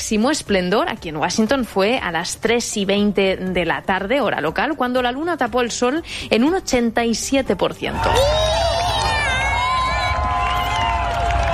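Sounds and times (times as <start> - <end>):
speech: 0.0 - 9.0
crowd cheering and shouting during a solar eclipse in Washington: 7.9 - 11.5.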